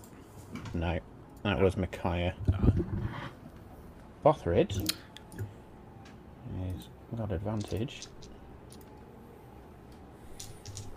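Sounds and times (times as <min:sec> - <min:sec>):
speech: 0:00.7 - 0:03.4, 0:04.2 - 0:05.6, 0:06.5 - 0:08.3
dice rolled during a game: 0:10.4 - 0:10.9.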